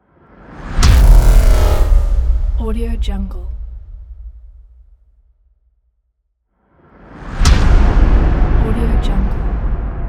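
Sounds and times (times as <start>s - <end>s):
tense impacts: 0.4s - 5.4s, 7.1s - 10.0s.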